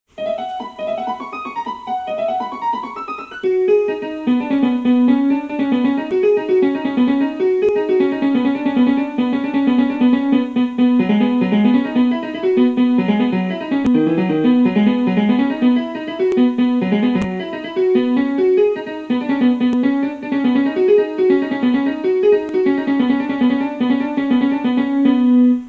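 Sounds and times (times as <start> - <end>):
piano music: 0.1 - 25.6.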